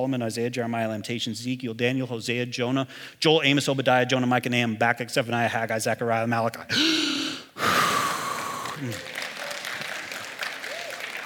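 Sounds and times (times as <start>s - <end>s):
speech: 0.0s - 7.2s, 8.8s - 9.1s
audience clapping: 7.9s - 11.2s
whoop or whistle: 10.7s - 11.1s.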